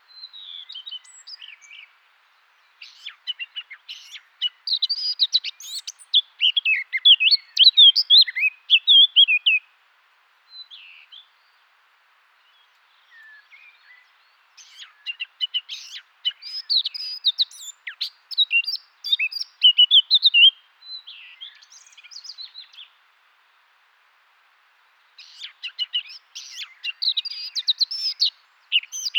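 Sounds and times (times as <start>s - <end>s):
Eurasian blackcap singing: 2.8s - 9.6s, 14.6s - 22.8s, 25.2s - 29.1s.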